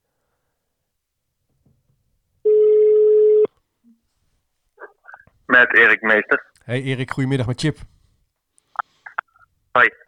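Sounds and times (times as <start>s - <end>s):
telephone ringing tone on an outgoing call: 2.4s - 3.5s
speech: 5.6s - 8.0s, 9.8s - 10.0s.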